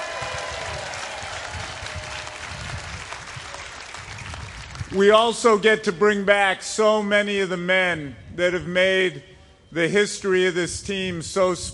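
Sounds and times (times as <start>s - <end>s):
audience applause: 0.0s - 4.9s
speech: 4.9s - 11.7s.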